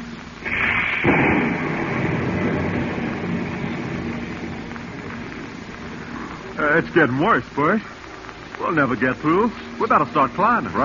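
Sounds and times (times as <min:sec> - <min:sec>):
thunder of a heavy storm over the vast Pacific: 0:00.4 - 0:06.3
speech: 0:06.8 - 0:08.0, 0:08.6 - 0:10.8.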